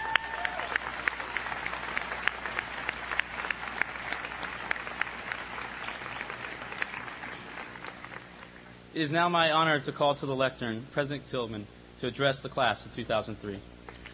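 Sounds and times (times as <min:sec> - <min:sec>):
round of applause: 0:00.0 - 0:08.7, 0:13.9 - 0:14.1
speech: 0:09.0 - 0:13.7.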